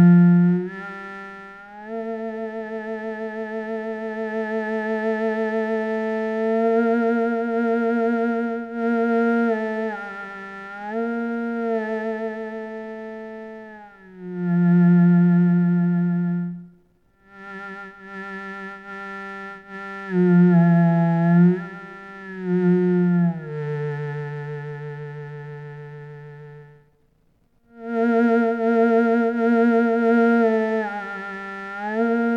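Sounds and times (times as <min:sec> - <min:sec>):
cello: 0:00.0 - 0:32.3.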